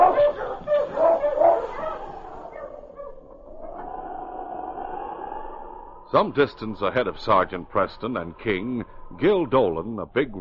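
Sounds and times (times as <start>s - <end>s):
husky sled dogs barking and yipping: 0.0s - 3.3s
speech: 6.1s - 10.3s.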